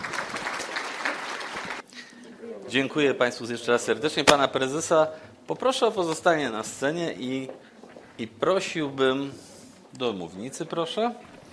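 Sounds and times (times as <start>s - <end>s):
conference audience applause: 0.0s - 1.8s
speech: 2.7s - 11.3s.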